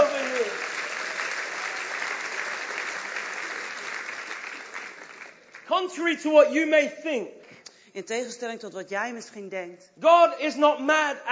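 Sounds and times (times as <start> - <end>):
audience clapping at a church gathering: 0.0 - 6.4
speech: 5.8 - 11.3.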